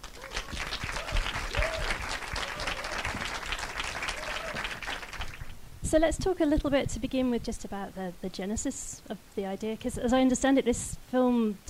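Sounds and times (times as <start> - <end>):
audience applause welcoming two filmmakers onto the stage: 0.0 - 5.6
speech: 5.9 - 11.6.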